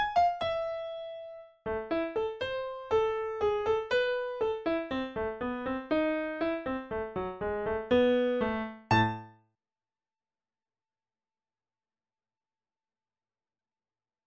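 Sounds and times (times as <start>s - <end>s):
piano: 0.0s - 9.4s.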